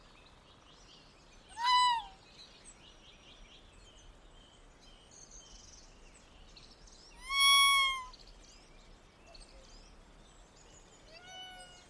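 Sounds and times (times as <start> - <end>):
tanuki raccoon dog vocalizations in forest: 1.6 - 2.1, 7.2 - 8.1.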